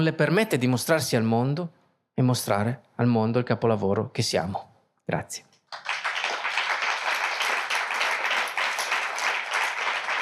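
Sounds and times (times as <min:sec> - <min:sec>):
speech: 0:00.0 - 0:05.9
audience applause: 0:05.7 - 0:10.2.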